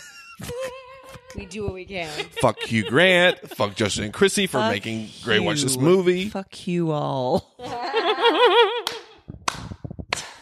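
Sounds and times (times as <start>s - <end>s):
laughter: 0.0s - 6.0s, 7.6s - 9.1s
speech: 1.4s - 7.6s
slow clap: 8.8s - 10.4s.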